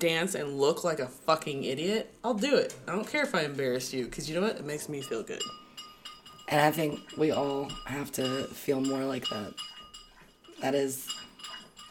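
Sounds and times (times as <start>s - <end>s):
speech: 0.0s - 5.6s, 6.5s - 9.7s, 10.6s - 11.2s
bell rung as a wrap-up signal: 4.7s - 11.8s.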